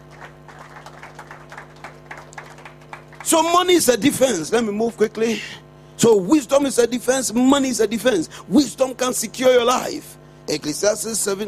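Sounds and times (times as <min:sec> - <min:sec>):
crowd clapping: 0:00.0 - 0:03.8
low electrical hum: 0:00.0 - 0:11.4
speech: 0:03.2 - 0:11.4.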